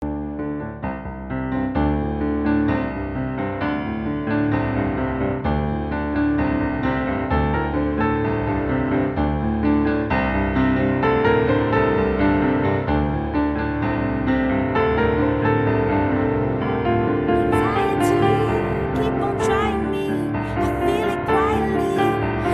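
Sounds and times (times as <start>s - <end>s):
piano cover: 0.1s - 22.5s.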